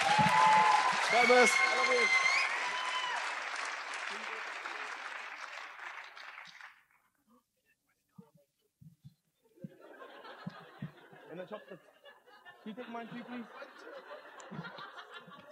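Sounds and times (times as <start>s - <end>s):
audience applause: 0.0s - 7.0s
speech: 1.1s - 2.3s
laughter: 9.6s - 15.5s.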